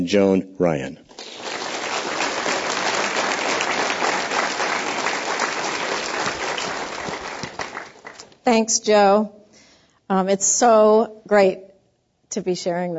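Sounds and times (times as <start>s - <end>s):
speech: 0.0s - 1.4s, 8.5s - 9.4s, 10.1s - 11.7s, 12.3s - 12.9s
audience applause welcoming speakers at a Commonwealth Club program: 1.1s - 8.4s.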